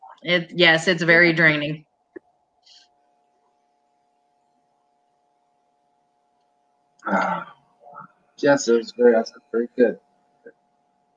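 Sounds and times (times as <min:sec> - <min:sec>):
speech: 0:00.2 - 0:01.9, 0:07.1 - 0:07.5, 0:08.4 - 0:10.0
person yawning repeatedly: 0:07.0 - 0:07.5.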